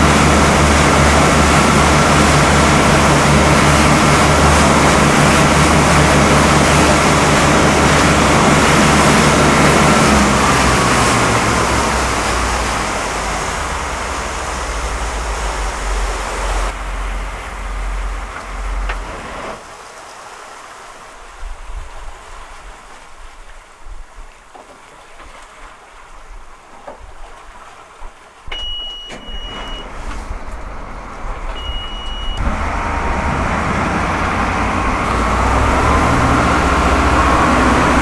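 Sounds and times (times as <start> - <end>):
boat engine running and stopping heard onboard: 0.0 - 19.8, 28.4 - 38.0.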